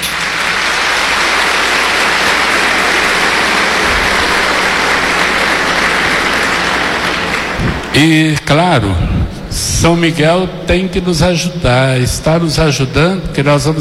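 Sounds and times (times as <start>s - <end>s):
round of applause: 0.0s - 8.3s
speech: 8.0s - 13.7s.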